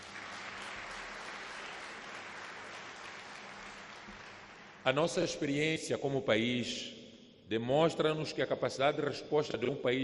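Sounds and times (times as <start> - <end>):
audience applause: 0.0 - 5.0
speech: 4.8 - 10.0.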